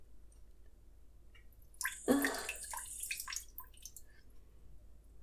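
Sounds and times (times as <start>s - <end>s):
person urinating: 1.8s - 4.1s.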